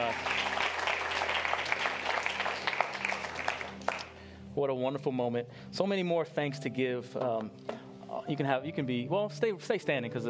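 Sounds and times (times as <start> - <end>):
crowd clapping: 0.0 - 4.2
speech: 4.6 - 7.6, 8.2 - 10.2.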